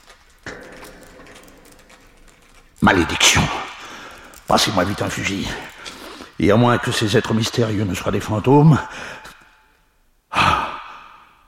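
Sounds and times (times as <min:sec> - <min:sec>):
continuous metallic creaking and grinding: 0:00.0 - 0:08.6
speech: 0:02.8 - 0:03.7, 0:04.5 - 0:05.8, 0:06.4 - 0:09.3.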